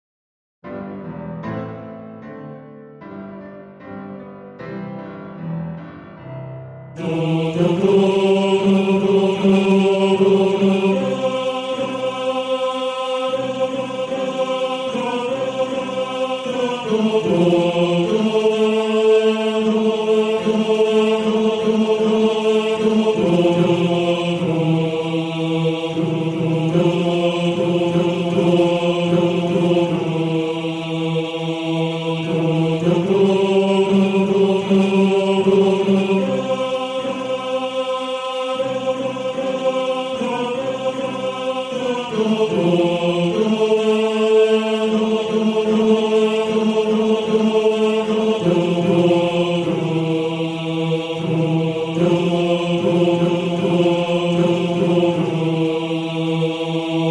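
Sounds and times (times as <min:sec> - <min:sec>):
second tenors of a male choir singing: 0:07.0 - 0:57.0.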